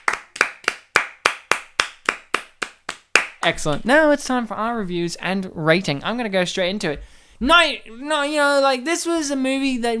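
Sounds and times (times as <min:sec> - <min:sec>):
round of applause: 0:00.0 - 0:03.5
speech: 0:03.4 - 0:09.9.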